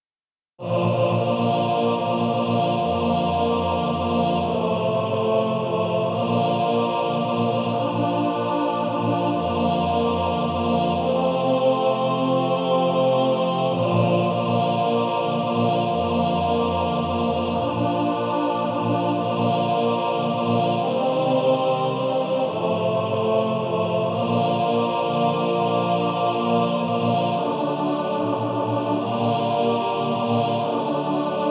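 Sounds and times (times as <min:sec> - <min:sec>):
male choir singing in four parts: 0:00.6 - 0:31.4.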